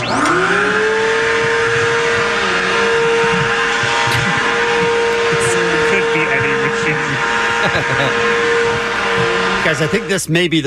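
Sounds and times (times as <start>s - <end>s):
vacuum cleaner running: 0.0s - 10.5s
laughter: 3.3s - 10.2s
speech: 9.7s - 10.6s.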